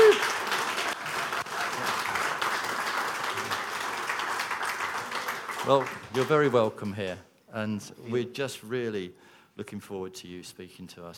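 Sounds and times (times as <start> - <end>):
audience applause welcoming a guest speaker: 0.0 - 6.7
speech: 5.7 - 11.1.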